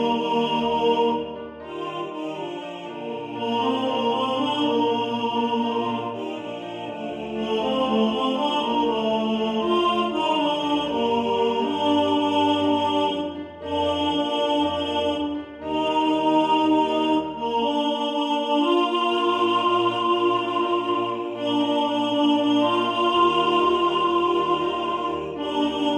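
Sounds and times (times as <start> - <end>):
tenor voice singing in the foreground: 0.0 - 25.9.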